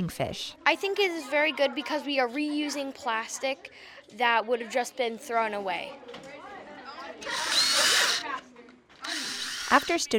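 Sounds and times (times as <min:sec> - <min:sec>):
speech: 0:00.0 - 0:06.3, 0:07.2 - 0:07.6, 0:09.7 - 0:10.1
power drill boring holes in plastic pieces: 0:07.2 - 0:08.2, 0:09.0 - 0:10.1.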